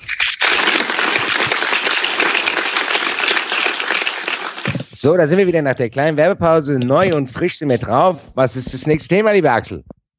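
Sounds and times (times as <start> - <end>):
applause played in: 0.3 - 5.0
speech: 5.0 - 10.1.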